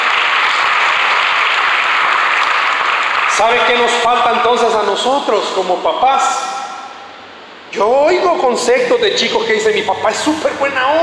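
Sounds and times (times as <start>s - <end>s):
audience applause: 0.0s - 4.0s
speech: 3.4s - 6.4s, 7.7s - 11.0s.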